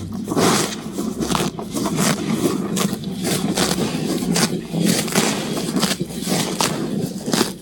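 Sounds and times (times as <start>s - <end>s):
cow grazing eagerly in wet grass: 0.0s - 7.5s.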